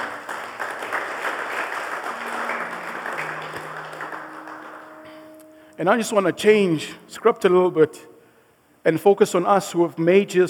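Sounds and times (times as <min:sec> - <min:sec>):
audience applause: 0:00.0 - 0:05.4
speech: 0:05.8 - 0:08.1, 0:08.8 - 0:10.4.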